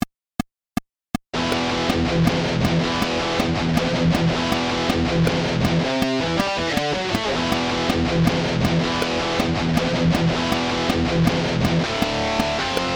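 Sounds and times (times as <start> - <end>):
rhythm: 1.4 - 12.9.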